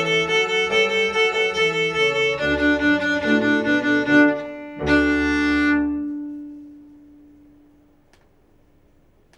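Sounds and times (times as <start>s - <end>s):
boogie woogie open string harmony: 0.0s - 7.3s.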